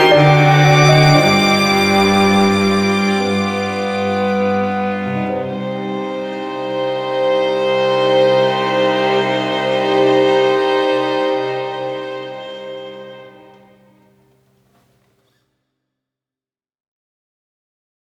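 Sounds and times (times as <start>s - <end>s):
piano: 0.0s - 14.2s.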